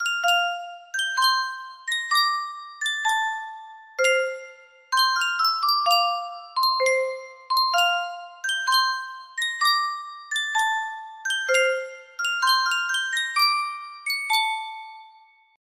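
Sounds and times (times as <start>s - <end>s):
music box melody: 0.0s - 15.6s.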